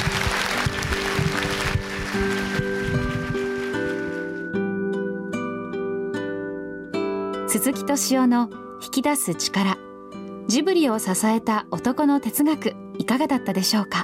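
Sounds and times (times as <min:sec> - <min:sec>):
audience applause: 0:00.0 - 0:04.0
gentle music theme: 0:00.0 - 0:14.0
speech: 0:07.5 - 0:09.8, 0:10.5 - 0:14.0.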